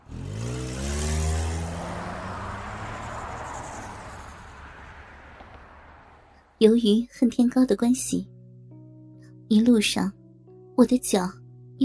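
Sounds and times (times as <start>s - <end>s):
car engine starting and driving off: 0.0s - 6.3s
speech: 6.6s - 8.3s, 9.5s - 10.2s, 10.8s - 11.8s.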